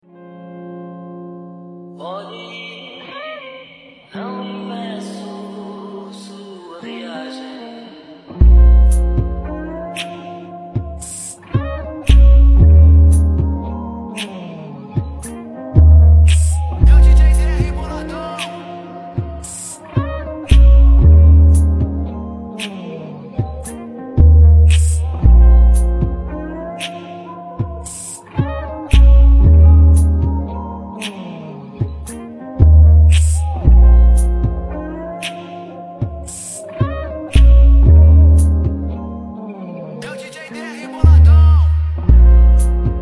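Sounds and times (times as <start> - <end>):
trap beat remix: 8.3 - 39.4, 40.0 - 43.0.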